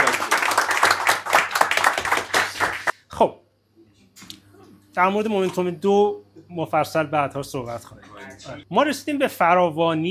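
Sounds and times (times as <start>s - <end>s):
audience clapping: 0.0s - 3.0s
speech: 3.2s - 3.4s, 5.0s - 10.1s.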